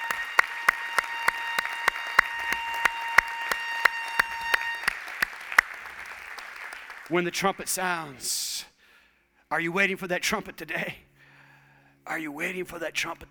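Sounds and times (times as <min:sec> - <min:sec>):
audience applause: 0:00.0 - 0:08.4
speech: 0:07.1 - 0:08.7, 0:09.5 - 0:11.0, 0:12.1 - 0:13.2.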